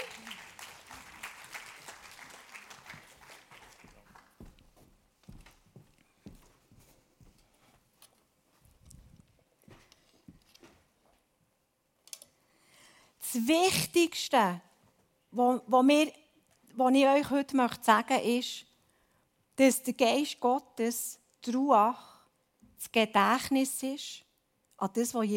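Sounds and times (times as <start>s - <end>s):
audience applause: 0.0s - 4.6s
speech: 13.4s - 14.7s, 15.4s - 16.2s, 16.8s - 18.7s, 19.6s - 22.1s, 22.8s - 24.2s, 24.8s - 25.3s.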